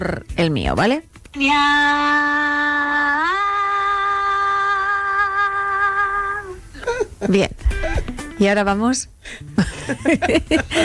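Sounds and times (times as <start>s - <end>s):
speech: 0.0s - 3.4s, 7.2s - 10.8s
long loud shout for a carol: 1.4s - 6.6s
laughter: 9.4s - 10.8s.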